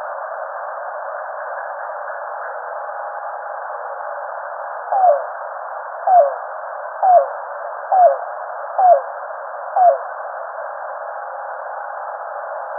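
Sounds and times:
yellow-billed cuckoo calling: 4.9s - 5.3s, 6.1s - 6.4s, 7.0s - 7.3s, 7.9s - 8.2s, 8.8s - 9.1s, 9.8s - 10.0s.

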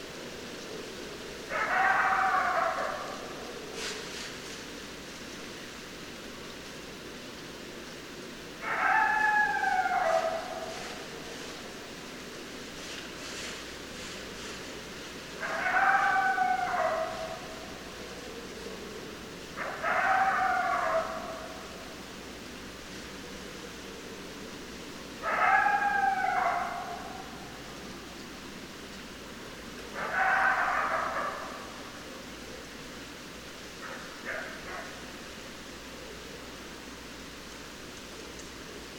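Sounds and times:
hiss: 0.0s - 38.9s
coyote howling and yelping: 1.5s - 3.6s, 8.6s - 11.1s, 15.4s - 18.4s, 19.6s - 21.7s, 25.2s - 27.6s, 29.9s - 32.0s.

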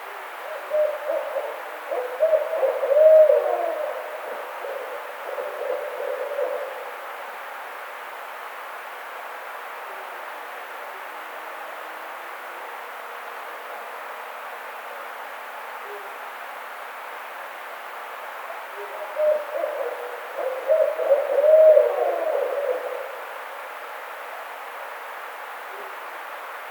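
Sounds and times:
Barred Owl calling: 0.4s - 7.0s, 18.7s - 23.4s.

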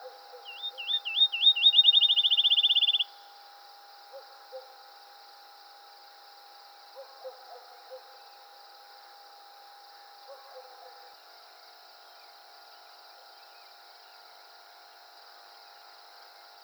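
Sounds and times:
field sparrow singing: 0.5s - 3.1s.

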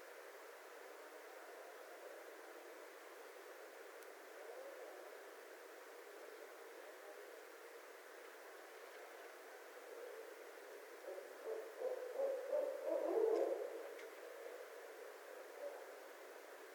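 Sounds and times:
barred owl hooting: 11.0s - 14.8s, 15.4s - 16.1s.

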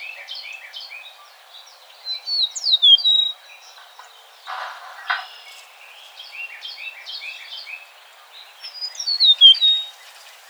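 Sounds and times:
Eastern meadowlark giving a loud sliding whistled phrase: 2.3s - 3.3s, 8.9s - 9.9s.

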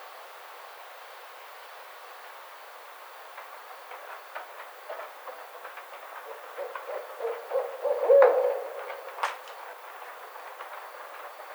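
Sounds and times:
barred owl hooting: 6.2s - 9.8s.

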